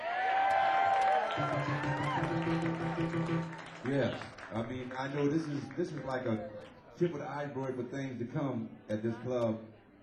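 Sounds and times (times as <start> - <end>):
crowd applauding: 0.0 - 7.1
speech: 1.4 - 9.7.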